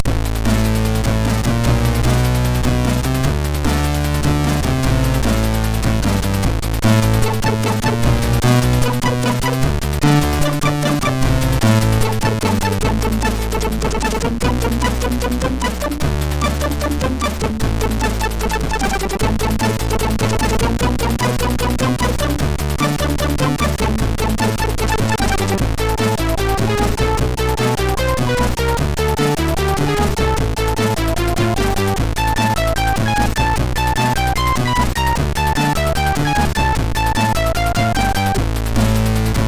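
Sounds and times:
MOS6581R4 tune: 0.0 - 39.4.

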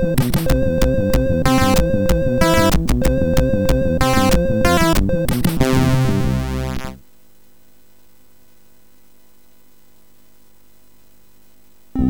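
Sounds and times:
Morse code beeps on a MOS6581R4 sound chip: 0.0 - 6.9.

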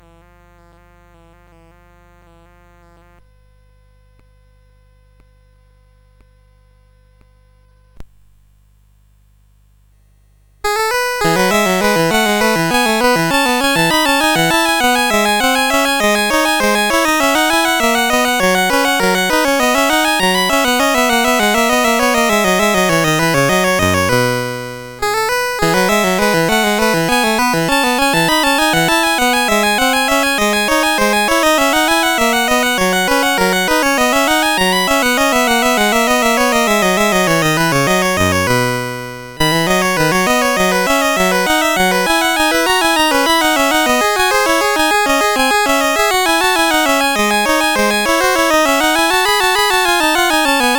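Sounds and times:
bourree chiptune on CSG8580R5 SID chip: 10.6 - 50.7.

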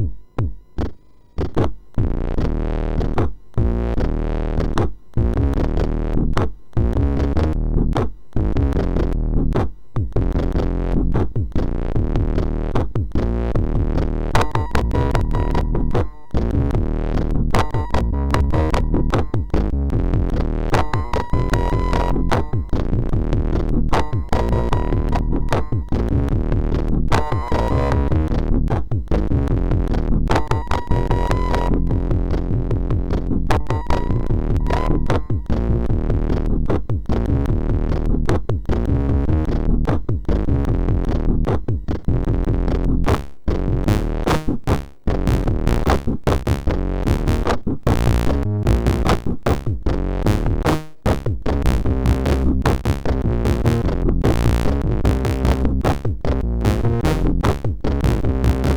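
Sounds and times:
electro music on SID MOS6581R4 chip: 0.0 - 58.7.

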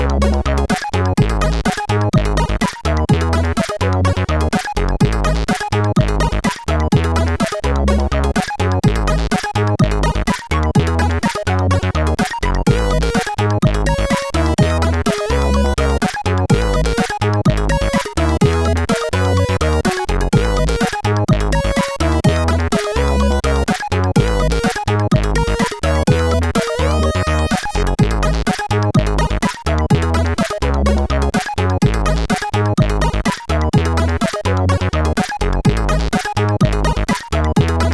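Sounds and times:
funky SID chip synth music: 0.0 - 37.9.

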